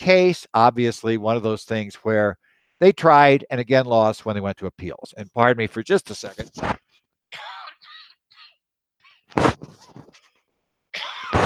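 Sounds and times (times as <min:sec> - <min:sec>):
speech: 0:00.0 - 0:07.4
raspy coughs: 0:07.3 - 0:10.2, 0:11.0 - 0:11.4.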